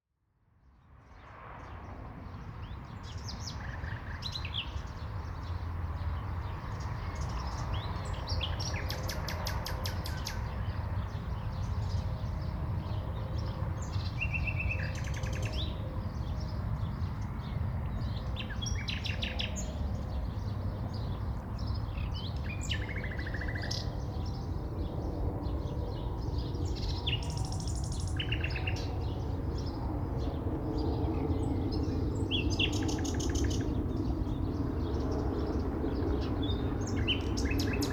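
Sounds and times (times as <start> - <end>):
planes over a city park: 0.3 - 37.9
birds in a city park in spring: 1.1 - 37.9.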